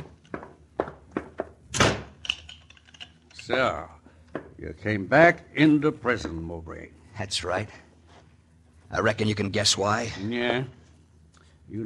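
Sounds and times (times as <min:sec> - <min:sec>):
prison door slammed shut and locked: 0:01.7 - 0:02.2
speech: 0:03.5 - 0:04.0, 0:04.6 - 0:07.8, 0:08.9 - 0:10.8, 0:11.7 - 0:11.8.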